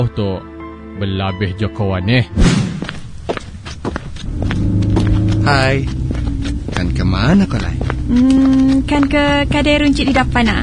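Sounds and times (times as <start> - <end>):
speech: 0.0 - 2.7, 5.5 - 6.0, 6.8 - 10.6
footsteps walking: 2.6 - 9.8
low engine hum: 3.6 - 10.6.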